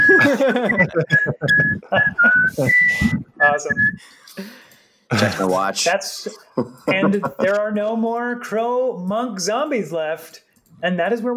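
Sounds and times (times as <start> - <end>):
laughter: 0.0 - 3.9, 6.3 - 7.6
person whistling a lazy elevator-music-style tune: 0.0 - 4.0
speech: 0.4 - 11.3.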